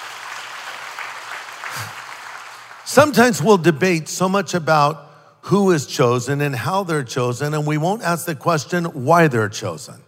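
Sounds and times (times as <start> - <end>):
faint applause from a church congregation during a sermon: 0.0 - 3.1
speech: 2.9 - 10.0.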